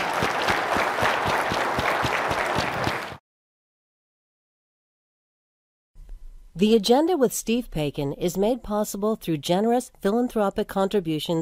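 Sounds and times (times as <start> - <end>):
audience applause: 0.0 - 3.2
speech: 6.6 - 11.3.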